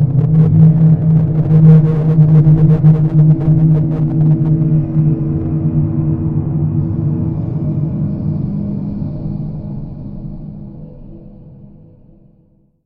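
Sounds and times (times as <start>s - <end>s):
horror background ambience: 0.0s - 12.7s.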